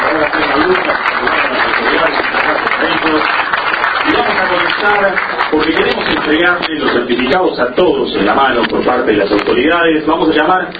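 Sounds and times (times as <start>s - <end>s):
audience applause for a government undersecretary at a community radio ceremony: 0.0s - 7.3s
speech: 4.8s - 10.7s.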